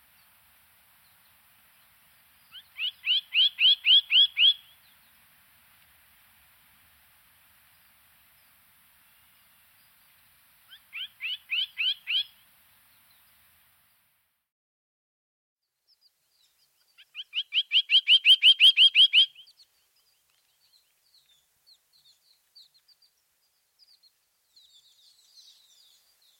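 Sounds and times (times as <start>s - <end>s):
bird singing: 1.0s - 5.2s, 10.7s - 13.3s, 15.9s - 26.3s.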